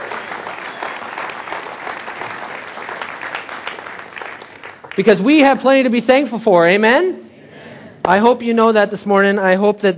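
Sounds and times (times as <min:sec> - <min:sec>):
audience applause: 0:00.0 - 0:05.0
speech: 0:05.0 - 0:07.2, 0:08.0 - 0:09.9.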